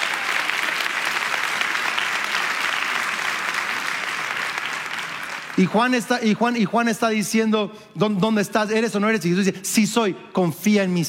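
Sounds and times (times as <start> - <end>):
audience applause: 0.0 - 6.6
speech: 5.6 - 11.0.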